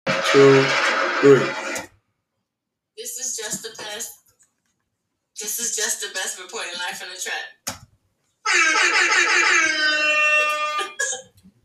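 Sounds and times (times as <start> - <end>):
speech: 0.1 - 1.6, 3.0 - 4.1, 5.4 - 7.8, 8.4 - 11.6
air horns blasting: 8.5 - 10.8.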